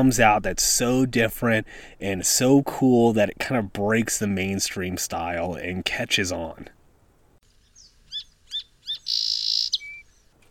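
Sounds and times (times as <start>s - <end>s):
speech: 0.0s - 6.8s
song sparrow singing: 7.6s - 10.4s.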